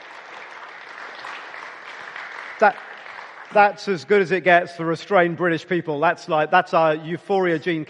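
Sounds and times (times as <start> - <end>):
audience applause: 0.0 - 4.5
speech: 2.6 - 2.9, 3.5 - 7.8.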